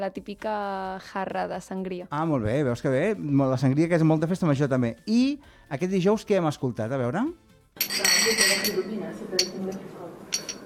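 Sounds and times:
speech: 0:00.0 - 0:10.0
wine glasses clinking in a toast between friends: 0:07.8 - 0:10.6.

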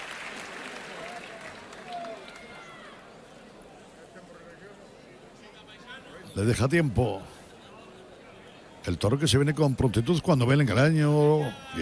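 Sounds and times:
bullring audience ovation with clapping: 0:00.0 - 0:03.2
faint murmurs of voices: 0:00.0 - 0:11.8
speech: 0:06.4 - 0:07.4, 0:08.8 - 0:11.8.

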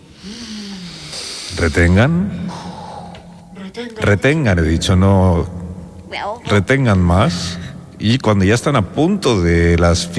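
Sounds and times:
deep group inhalation in breathing exercise: 0:00.0 - 0:03.7
speech: 0:00.2 - 0:00.7, 0:01.6 - 0:02.4, 0:03.7 - 0:10.1.

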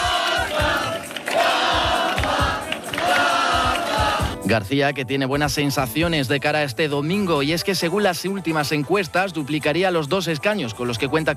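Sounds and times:
applause: 0:00.0 - 0:04.4
crowd of over 500 people shouting: 0:00.0 - 0:04.4
speech: 0:04.5 - 0:11.3.

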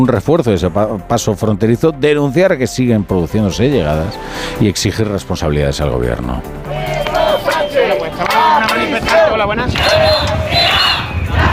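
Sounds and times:
speech: 0:00.0 - 0:07.0, 0:08.1 - 0:10.8
protesters shouting at a march: 0:06.7 - 0:11.5.

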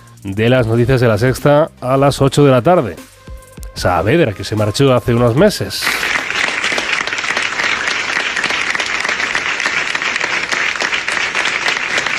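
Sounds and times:
speech: 0:00.2 - 0:03.1, 0:03.8 - 0:06.2
applause in a newsroom: 0:05.8 - 0:12.1.

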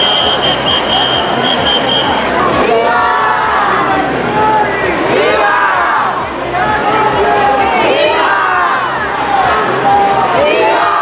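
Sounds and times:
steady high tone: 0:00.0 - 0:02.8
thousands of people in Ceuta chanting a welcome to the King and Queen: 0:00.0 - 0:11.0.

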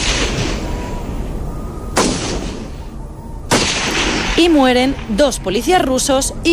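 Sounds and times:
gunshots: 0:00.0 - 0:00.9, 0:01.9 - 0:02.8, 0:03.5 - 0:05.1
speech: 0:04.4 - 0:06.5.

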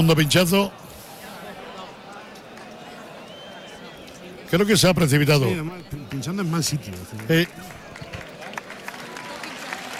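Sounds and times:
speech: 0:00.0 - 0:00.8, 0:04.5 - 0:07.8
bullring crowd applauding: 0:05.8 - 0:09.9.

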